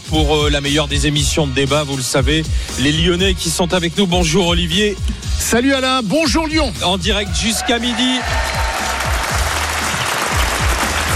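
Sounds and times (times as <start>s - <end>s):
speech: 0.1s - 8.7s
audience applause: 7.7s - 11.1s.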